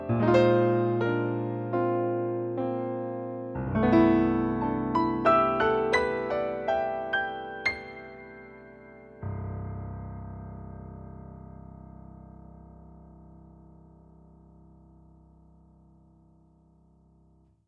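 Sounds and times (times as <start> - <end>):
grand piano playing: 0.0 - 15.5.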